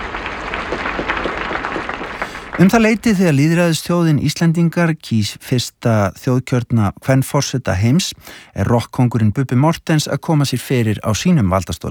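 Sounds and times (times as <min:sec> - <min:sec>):
crowd applauding Iceland's newly elected president: 0:00.0 - 0:03.7
speech: 0:02.6 - 0:11.9.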